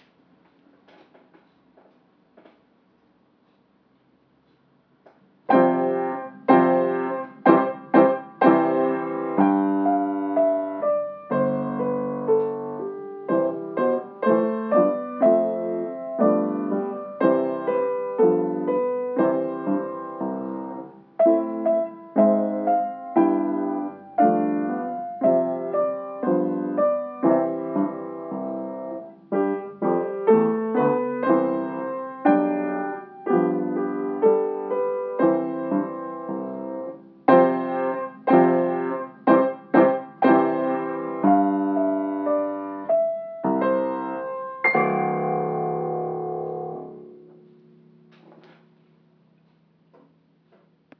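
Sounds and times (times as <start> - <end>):
cheerful duet music: 5.5 - 47.2.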